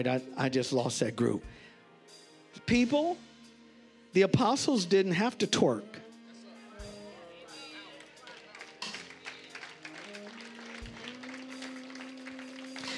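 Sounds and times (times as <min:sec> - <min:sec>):
speech: 0:00.0 - 0:03.3, 0:04.1 - 0:06.0
scattered hand claps: 0:07.8 - 0:12.9.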